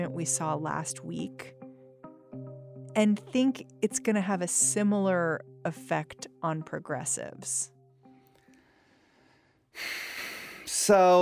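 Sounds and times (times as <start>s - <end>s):
speech: 0.0s - 1.6s, 3.0s - 7.8s, 9.8s - 10.1s, 10.7s - 11.2s
deep breath drawn during a political interview: 8.5s - 10.7s.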